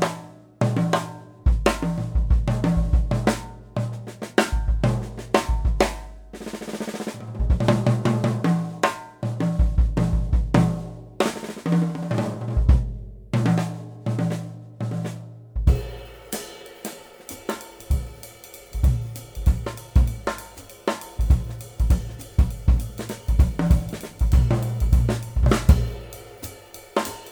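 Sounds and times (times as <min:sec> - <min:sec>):
Taye Studio Maple bop drum set: 0:00.0 - 0:27.3.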